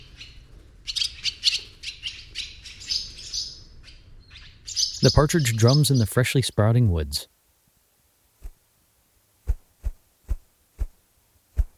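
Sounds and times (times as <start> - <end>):
swallows chattering and squeaking: 0.0 - 6.4
speech: 5.0 - 7.3.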